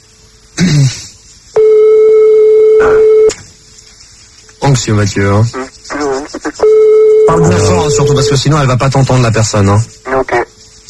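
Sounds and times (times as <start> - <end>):
telephone ringing tone during a call: 1.6 - 3.3, 6.6 - 8.4
speech: 4.7 - 5.8, 7.3 - 10.4.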